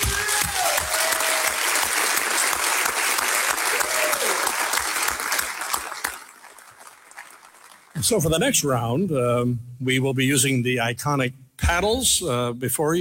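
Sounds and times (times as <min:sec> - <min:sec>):
audience applause: 0:00.0 - 0:08.1
speech: 0:08.0 - 0:12.9.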